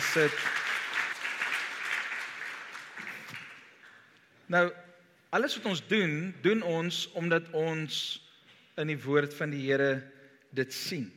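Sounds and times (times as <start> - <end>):
audience applause: 0.0 - 4.0
speech: 0.1 - 0.6, 4.5 - 8.2, 8.8 - 11.1.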